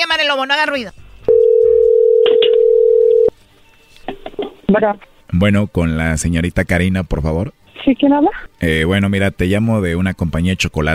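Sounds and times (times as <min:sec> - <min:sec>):
speech: 0:00.2 - 0:01.0, 0:04.7 - 0:10.9
telephone number being dialed: 0:01.4 - 0:03.3.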